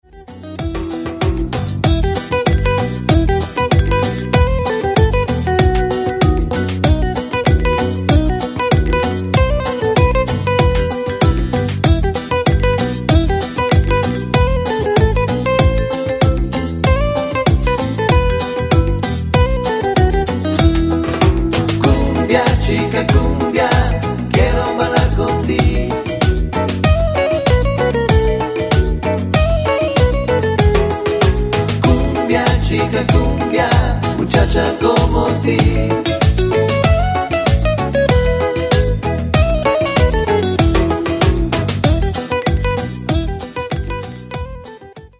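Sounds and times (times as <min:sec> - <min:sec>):
cumbia music: 0:00.0 - 0:45.1.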